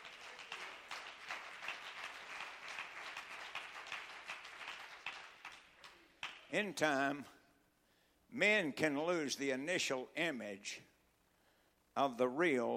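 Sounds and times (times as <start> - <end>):
audience clapping hands: 0.0 - 6.5
speech: 6.5 - 7.4, 8.3 - 10.9, 12.0 - 12.7.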